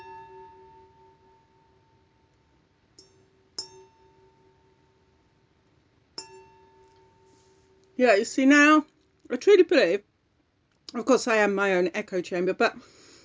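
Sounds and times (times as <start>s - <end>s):
wine glasses clinking: 3.0s - 4.7s, 6.2s - 7.4s
speech: 8.0s - 10.1s, 10.9s - 13.0s.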